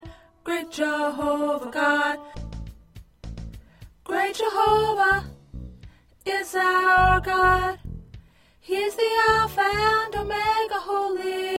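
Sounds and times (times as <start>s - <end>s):
soprano singing: 0.0s - 2.5s, 4.0s - 5.4s, 6.2s - 7.8s, 8.6s - 11.5s.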